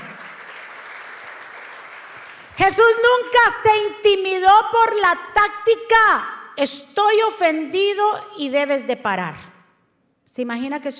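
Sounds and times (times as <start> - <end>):
crowd clapping loudly: 0.0 - 2.7
speech: 2.6 - 9.5, 10.3 - 10.9.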